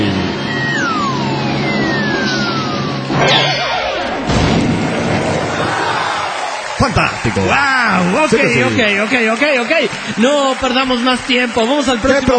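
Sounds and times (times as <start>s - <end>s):
constant noisy background: 0.0s - 12.3s
long falling whistle of a cannon firing a man in a comedy show: 0.3s - 4.3s
heavy booming thuds of a cannon firing a man out of its barrel: 4.0s - 5.7s
speech: 7.0s - 12.3s.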